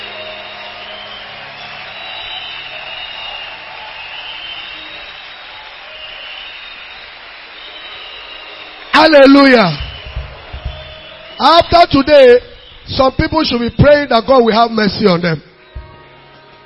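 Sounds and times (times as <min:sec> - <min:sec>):
crowd clapping: 0:00.0 - 0:14.2
speech: 0:09.0 - 0:09.8, 0:11.4 - 0:15.5.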